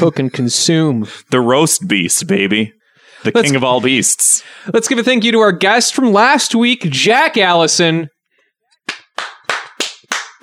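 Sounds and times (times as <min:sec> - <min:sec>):
speech: 0:00.0 - 0:08.2
sharp hand claps: 0:08.8 - 0:10.4.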